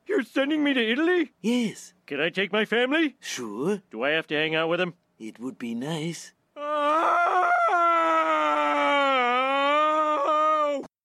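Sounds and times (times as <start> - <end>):
speech: 0.4 - 7.4
strange cartoon scream: 6.6 - 10.9.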